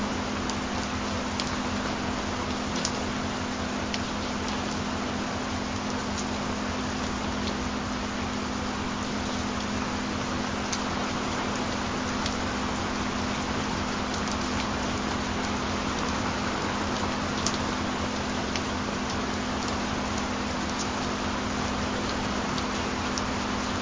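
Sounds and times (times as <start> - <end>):
rain: 0.0 - 23.8.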